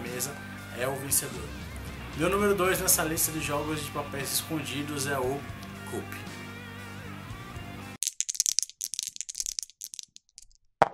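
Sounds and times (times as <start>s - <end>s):
music: 0.0s - 8.0s
speech: 0.2s - 6.3s
dice clattering and tumbling: 8.0s - 10.9s.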